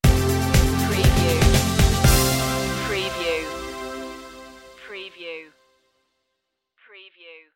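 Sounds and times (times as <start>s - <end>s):
music stinger: 0.0s - 4.8s.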